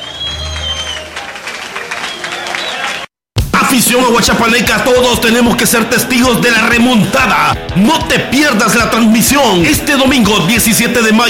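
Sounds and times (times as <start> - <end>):
applause: 0.0 - 3.2
speech: 3.7 - 11.2.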